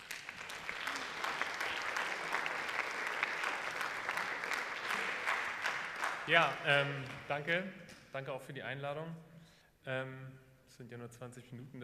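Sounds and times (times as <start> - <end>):
audience applause: 0.0 - 7.2
speech: 6.3 - 11.8.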